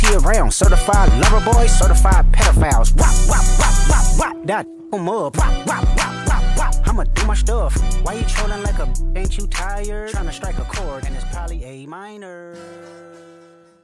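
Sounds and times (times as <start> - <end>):
drum beat: 0.0 - 4.2, 5.4 - 11.5.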